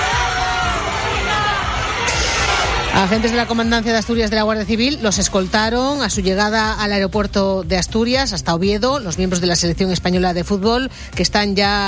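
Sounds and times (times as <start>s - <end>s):
fans cheering and applauding at airport: 0.0s - 7.0s
speech: 2.9s - 11.8s.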